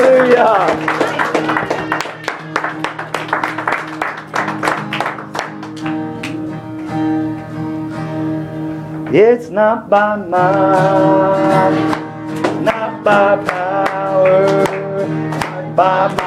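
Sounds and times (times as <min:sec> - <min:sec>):
audience clapping hands in praise: 0:00.0 - 0:07.2, 0:11.9 - 0:16.2
speech: 0:09.2 - 0:12.0, 0:13.1 - 0:13.6, 0:15.8 - 0:16.2.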